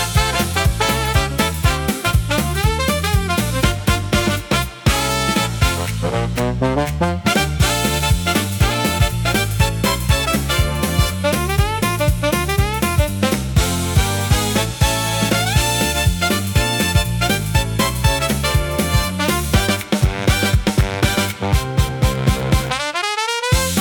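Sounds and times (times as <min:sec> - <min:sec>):
electro swing pop with brass: 0:00.0 - 0:23.7.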